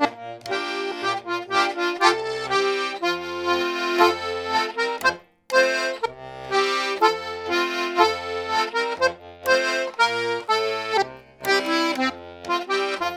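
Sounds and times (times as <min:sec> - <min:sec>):
tune played on a diatonic instrument: 0:00.0 - 0:13.1.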